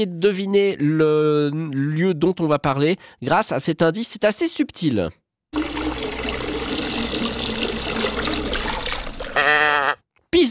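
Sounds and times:
speech: 0.0s - 5.2s
Pissevache waterfall in Valais trickling: 5.6s - 9.4s.

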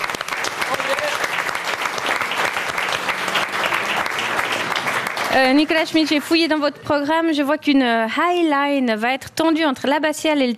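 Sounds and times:
applause: 0.0s - 6.6s
speech: 5.3s - 10.5s.

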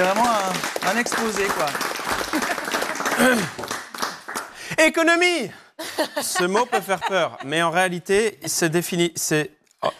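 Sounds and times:
crowd applauding: 0.0s - 4.6s
speech: 0.9s - 3.7s, 4.8s - 9.9s
laughter: 5.8s - 8.6s.

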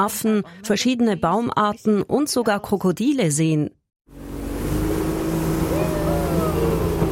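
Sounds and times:
speech: 0.0s - 4.2s
small wooden motorboat accelerating through a curve: 4.1s - 7.1s.

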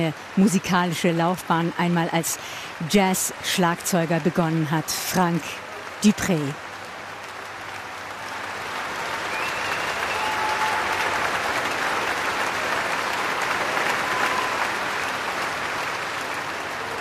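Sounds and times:
speech: 0.0s - 6.7s
concert audience applauding soloist and orchestra: 5.8s - 16.9s.

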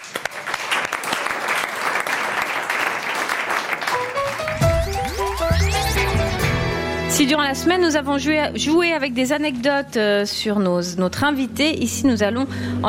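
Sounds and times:
audience applause: 0.0s - 6.6s
speech: 7.2s - 12.8s.

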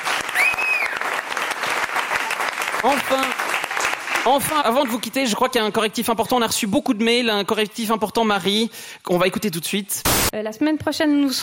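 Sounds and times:
audience applause: 0.0s - 5.1s
speech: 2.8s - 3.4s, 4.2s - 11.4s.

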